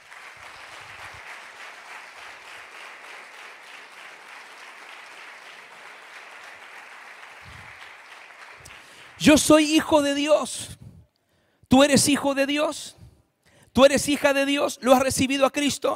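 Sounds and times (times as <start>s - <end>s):
audience applause: 0.0s - 9.6s
speech: 9.2s - 10.8s, 11.7s - 13.0s, 13.8s - 15.9s.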